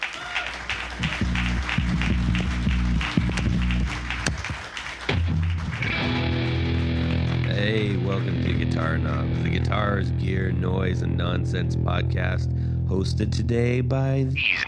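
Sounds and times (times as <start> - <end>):
audience applause: 0.0 - 9.5
speech: 7.7 - 14.6.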